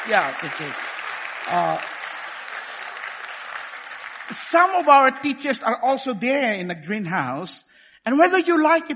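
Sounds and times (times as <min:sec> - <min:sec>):
audience applause: 0:00.0 - 0:05.1
speech: 0:00.1 - 0:02.1, 0:04.5 - 0:08.9.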